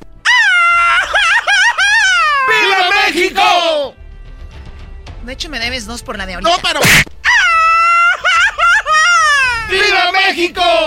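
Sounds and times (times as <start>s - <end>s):
Mexican celebratory grito: 0.3s - 3.9s, 7.3s - 10.8s
laughter: 0.8s - 2.7s, 7.9s - 9.7s
speech: 5.3s - 7.2s, 9.7s - 10.8s.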